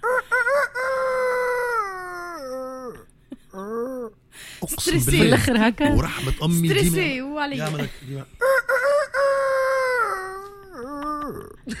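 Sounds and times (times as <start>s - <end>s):
voice imitating a rooster crowing: 0.0s - 3.0s, 8.4s - 11.6s
speech: 4.7s - 8.4s.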